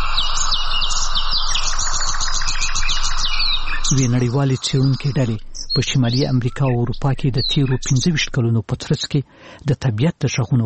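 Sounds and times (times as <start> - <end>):
low rumble: 0.0 - 8.4
birds chirping and trilling in gardens and villages: 0.0 - 9.1
speech: 3.9 - 10.6.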